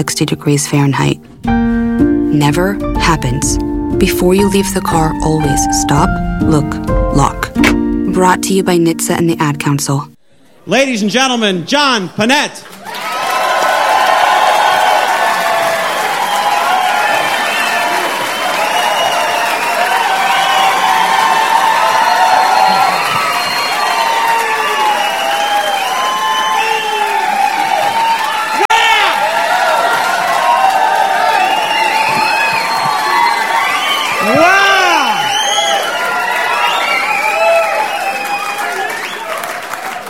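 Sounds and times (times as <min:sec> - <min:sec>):
speech: 0:00.0 - 0:01.6, 0:02.3 - 0:13.0
crowd cheering with whoops and shouts: 0:12.6 - 0:40.0
dense clapping: 0:12.7 - 0:40.0.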